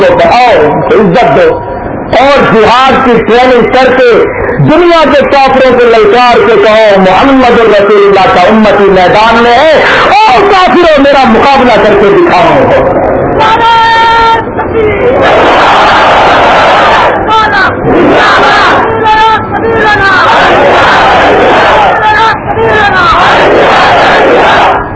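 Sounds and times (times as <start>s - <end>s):
speech: 0.0s - 16.5s
large crowd chanting religious slogans at a religious gathering: 13.4s - 24.9s.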